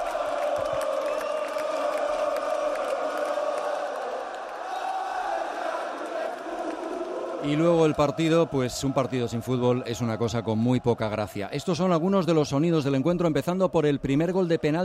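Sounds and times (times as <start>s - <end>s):
fans cheering arrival of team bus: 0.0s - 14.8s
speech: 7.4s - 14.8s.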